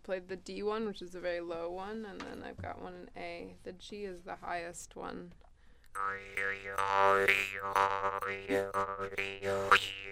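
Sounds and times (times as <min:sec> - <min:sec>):
speech: 0:00.1 - 0:10.1
jaw harp being played: 0:06.0 - 0:10.1.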